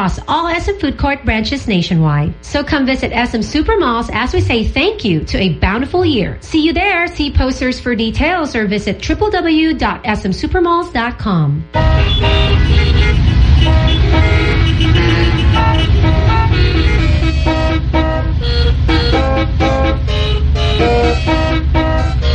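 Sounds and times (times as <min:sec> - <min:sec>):
street traffic engines rumbling: 0:00.0 - 0:09.4, 0:11.7 - 0:22.3
speech: 0:00.0 - 0:13.0
car horns honking in street traffic: 0:11.8 - 0:22.3.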